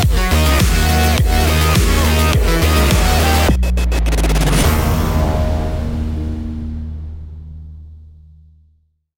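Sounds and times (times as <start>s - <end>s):
aggressive sport electro music: 0.0s - 6.1s.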